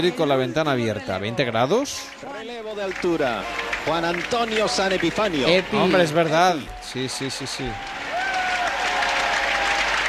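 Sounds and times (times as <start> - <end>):
speech: 0.0 - 8.0
audience ovation applause: 2.1 - 10.0.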